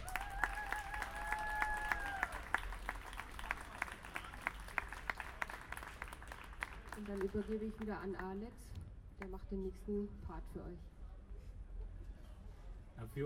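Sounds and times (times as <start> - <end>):
audience applause: 0.0 - 8.0
speech: 7.0 - 10.9, 13.0 - 13.2.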